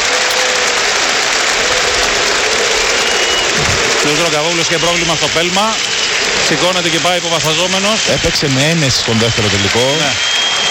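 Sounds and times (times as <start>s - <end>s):
crowd applauding in a stadium: 0.0s - 10.7s
speech: 4.1s - 10.4s.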